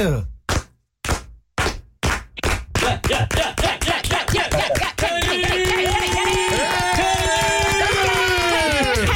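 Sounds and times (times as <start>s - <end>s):
slow clap applause: 1.6s - 9.1s
people cheering: 2.8s - 9.1s.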